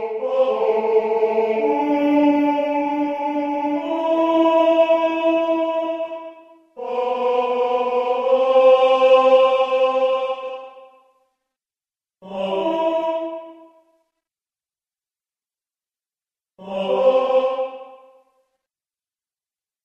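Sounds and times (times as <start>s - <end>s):
tenor singing: 0.0s - 11.0s, 12.2s - 13.8s, 16.6s - 18.2s.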